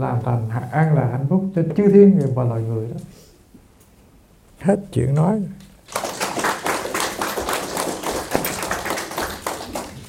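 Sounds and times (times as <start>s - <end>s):
speech: 0.0s - 3.2s, 4.6s - 6.0s
audience clapping at a Buddhist dharma talk: 5.8s - 10.0s.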